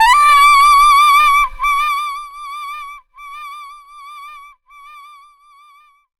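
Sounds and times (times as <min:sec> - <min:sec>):
saxophone riff: 0:00.0 - 0:03.5.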